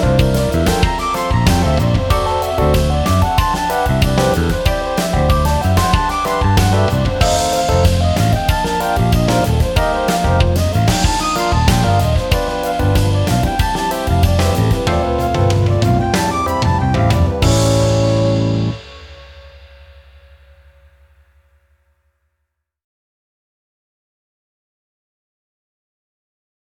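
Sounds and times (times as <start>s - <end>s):
creative rock backing track: 0.0s - 20.1s.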